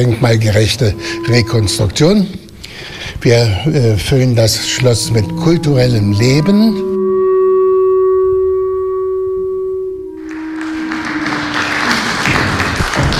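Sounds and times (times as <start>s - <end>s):
speech: 0.0s - 6.9s
sustained tonal chord ringing: 0.0s - 12.9s
audience applause: 10.2s - 13.1s.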